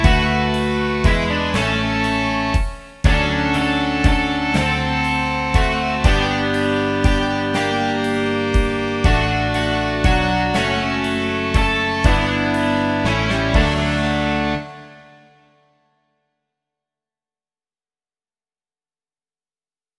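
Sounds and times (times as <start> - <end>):
rock music: 0.0 - 15.4.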